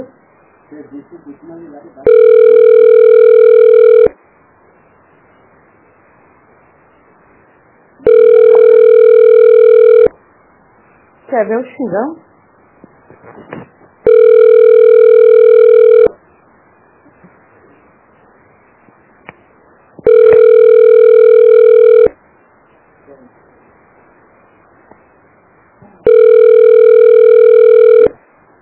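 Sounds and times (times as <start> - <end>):
speech: 0.7 - 4.2, 11.3 - 12.2
ringback tone of an unanswered telephone call: 2.0 - 4.2, 8.0 - 10.1, 14.0 - 16.2, 20.0 - 22.2, 26.0 - 28.2.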